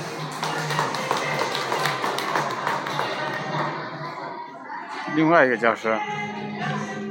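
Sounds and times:
crowd applauding: 0:00.0 - 0:04.1
speech: 0:05.2 - 0:07.0.

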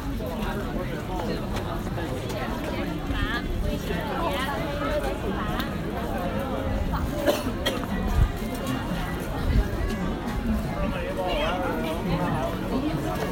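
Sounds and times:
crowd murmur on Nanluoguxiang in Beijing: 0:00.0 - 0:13.3.

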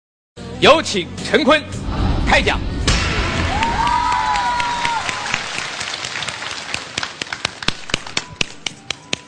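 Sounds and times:
speech: 0:00.6 - 0:02.7
audience cheering: 0:03.0 - 0:07.3
audience applause: 0:03.5 - 0:08.6.

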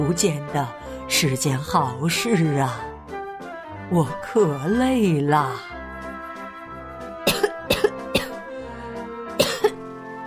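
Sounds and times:
speech: 0:00.0 - 0:02.9, 0:03.9 - 0:05.8
sheep coughing: 0:07.3 - 0:08.4, 0:09.4 - 0:09.8.

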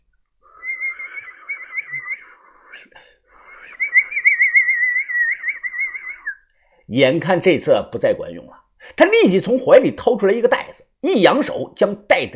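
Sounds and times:
person whistling: 0:00.5 - 0:06.5
speech: 0:06.9 - 0:12.3.

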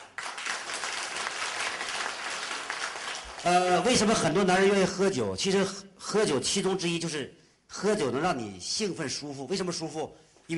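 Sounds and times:
audience applause: 0:00.0 - 0:04.0
speech: 0:03.4 - 0:10.5.

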